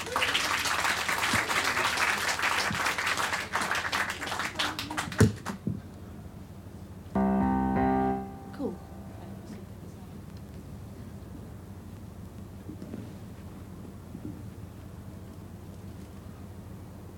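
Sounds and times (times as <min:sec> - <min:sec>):
audience applauding at a comedy show: 0:00.0 - 0:05.6
music: 0:07.2 - 0:09.4.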